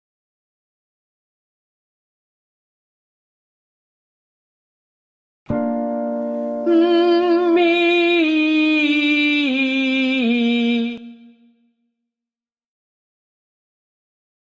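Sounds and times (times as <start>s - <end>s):
person humming a descending legato line: 6.6s - 11.4s.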